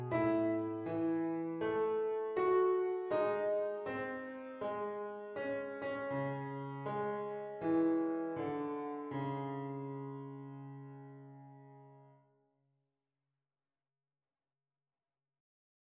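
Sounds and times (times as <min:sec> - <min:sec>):
simple piano piece: 0:00.0 - 0:12.2.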